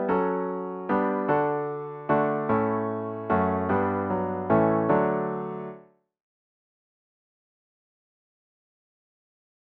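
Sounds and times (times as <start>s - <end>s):
piano: 0.0s - 6.0s.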